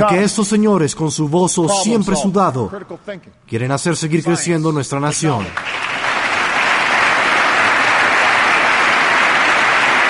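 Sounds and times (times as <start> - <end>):
speech: 0.0 - 6.0
audience applause: 5.3 - 10.0.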